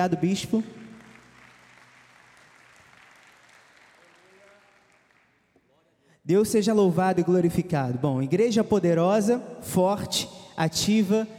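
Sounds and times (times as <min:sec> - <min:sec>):
speech: 0:00.0 - 0:00.8, 0:06.3 - 0:11.3
audience applause: 0:00.8 - 0:05.5.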